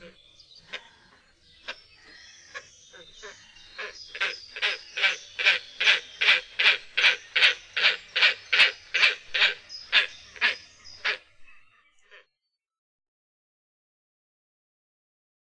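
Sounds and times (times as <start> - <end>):
great crested grebe drawn-out nasal calls: 2.5 - 12.3.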